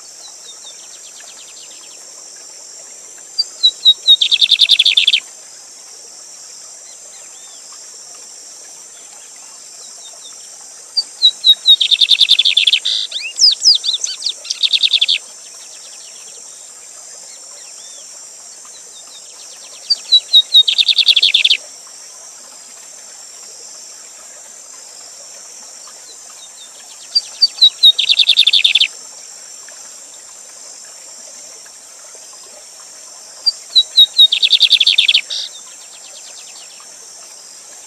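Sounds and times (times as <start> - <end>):
continuous rushing water: 0.0 - 37.8
Lined seedeater song with whistles and trill: 3.4 - 5.2, 11.0 - 15.2, 19.9 - 21.6, 27.2 - 28.9, 33.5 - 35.5.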